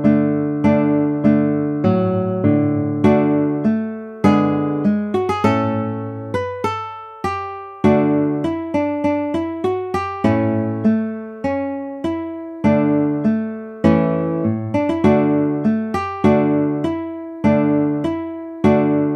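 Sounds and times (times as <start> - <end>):
guitar piece: 0.0 - 19.1.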